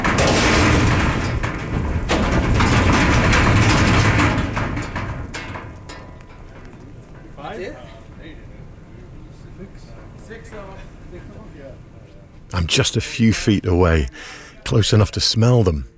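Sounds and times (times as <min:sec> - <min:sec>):
sharp knocks: 0:00.0 - 0:06.5
buffalo hooves clattering running out of a livestock trailer: 0:00.0 - 0:08.9
speech: 0:12.7 - 0:15.9.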